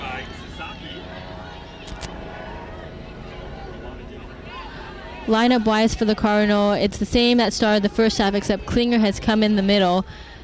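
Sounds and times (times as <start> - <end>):
faint crowd murmur: 0.0 - 10.4
medical helicopter flying overhead: 0.0 - 10.4
speech: 5.3 - 10.3.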